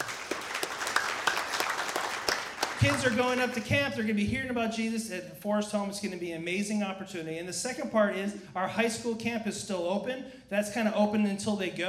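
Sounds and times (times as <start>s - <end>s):
audience applause: 0.0s - 3.7s
speech: 2.8s - 11.8s.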